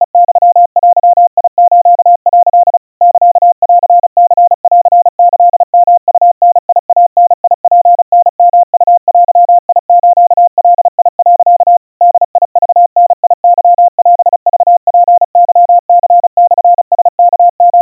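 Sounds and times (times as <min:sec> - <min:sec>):
crispy 700 Hz Morse code tones at 130 cpm: 0:00.0 - 0:17.8.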